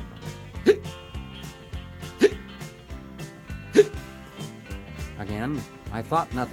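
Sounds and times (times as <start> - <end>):
person hiccuping: 0.6 - 0.9, 2.2 - 2.4, 3.7 - 4.0
speech: 5.4 - 6.5.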